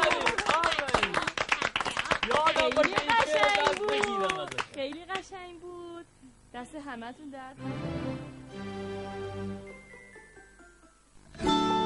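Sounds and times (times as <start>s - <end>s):
children in a classroom clapping for classmates: 0.0s - 5.3s
speech: 4.8s - 5.8s, 6.6s - 9.7s.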